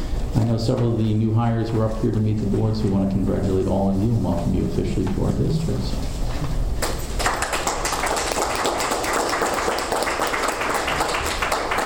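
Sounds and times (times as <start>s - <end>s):
speech: 0.5s - 6.5s
audience applause: 7.1s - 11.8s.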